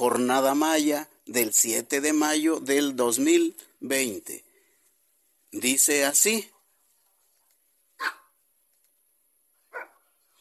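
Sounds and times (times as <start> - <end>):
speech: 0.0 - 4.4, 5.5 - 6.6
dog barking: 8.0 - 8.4, 9.7 - 10.1.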